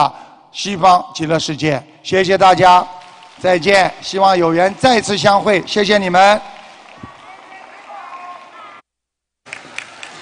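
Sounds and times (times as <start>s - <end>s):
speech: 0.0s - 6.6s
large audience applause: 3.0s - 8.8s, 9.5s - 10.2s.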